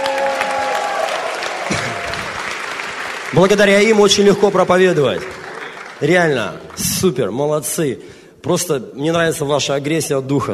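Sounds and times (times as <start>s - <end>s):
audience applause: 0.0s - 7.2s
speech: 3.3s - 5.4s, 6.0s - 10.5s.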